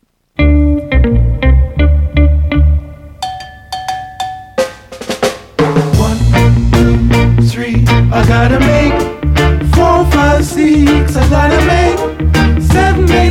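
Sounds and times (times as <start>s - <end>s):
1960s rocksteady record playing: 0.0s - 13.2s.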